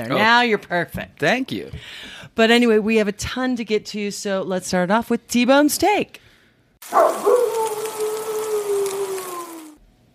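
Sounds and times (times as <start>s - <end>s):
speech: 0.0s - 6.2s, 6.8s - 7.6s
food sizzling on a grill: 6.8s - 9.8s.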